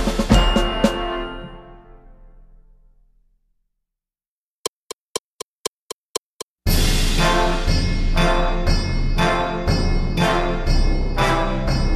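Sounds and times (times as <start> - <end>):
percussion: 0.0 - 1.6, 4.7 - 11.9.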